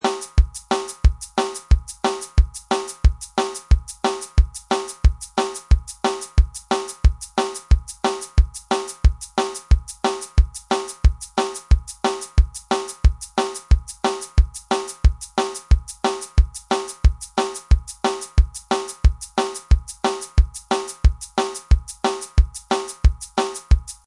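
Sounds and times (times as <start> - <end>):
ska music: 0.0 - 24.0.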